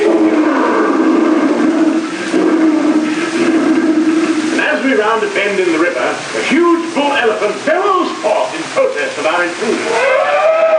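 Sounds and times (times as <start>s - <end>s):
African lion roaring: 0.0s - 4.8s
speech: 5.2s - 8.3s, 9.4s - 10.4s.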